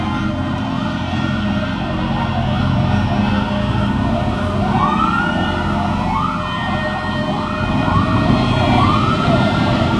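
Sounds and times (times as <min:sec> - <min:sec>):
siren: 0:00.0 - 0:09.9.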